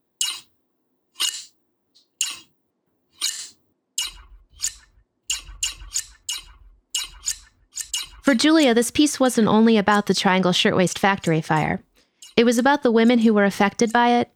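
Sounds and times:
12-inch scissors snipping: 0:00.2 - 0:00.5, 0:01.2 - 0:02.5, 0:03.2 - 0:08.7
soft low thuds: 0:04.0 - 0:08.6
speech: 0:08.3 - 0:14.3.

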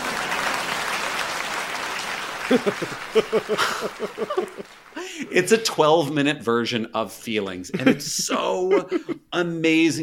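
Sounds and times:
concert audience applauding: 0:00.0 - 0:05.9
laughter: 0:02.2 - 0:05.6, 0:07.7 - 0:09.4
speech: 0:02.5 - 0:10.0.

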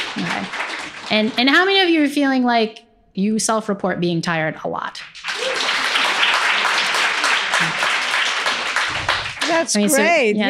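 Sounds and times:
audience clapping: 0:00.0 - 0:02.1, 0:04.9 - 0:10.4
speech: 0:00.2 - 0:05.1, 0:09.5 - 0:10.4.

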